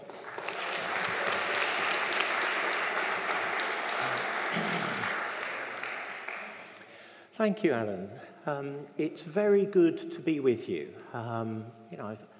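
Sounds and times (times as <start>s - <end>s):
church congregation applause welcoming a guest speaker: 0.0s - 7.1s
speech: 7.4s - 12.3s.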